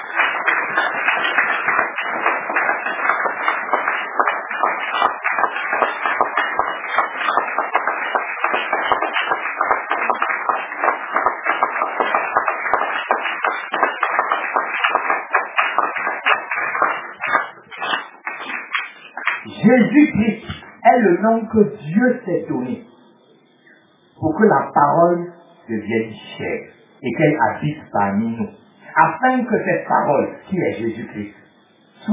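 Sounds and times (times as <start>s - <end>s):
audience applauding: 0.0s - 20.2s
speech: 21.3s - 22.9s, 24.4s - 31.4s.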